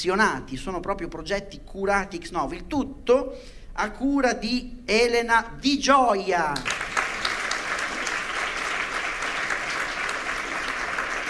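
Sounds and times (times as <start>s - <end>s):
speech: 0.0s - 7.0s
spontaneous audience applause: 6.6s - 11.2s.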